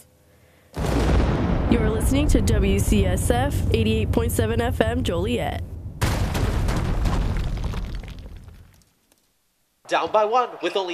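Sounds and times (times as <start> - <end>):
rumbling explosion sound effect: 0.8 - 8.8
speech: 1.7 - 5.7, 9.9 - 10.9.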